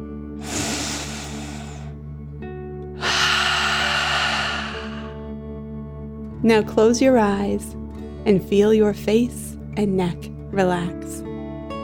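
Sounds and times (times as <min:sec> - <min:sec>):
deep breath in and out during a relaxation exercise: 0:00.4 - 0:02.0, 0:03.0 - 0:05.3
speech: 0:06.4 - 0:11.3.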